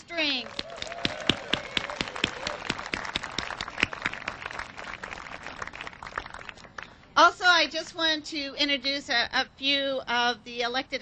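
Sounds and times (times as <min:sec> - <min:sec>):
audience clapping for a band at an outdoor civic celebration: 0:00.4 - 0:06.9
speech: 0:07.6 - 0:10.9.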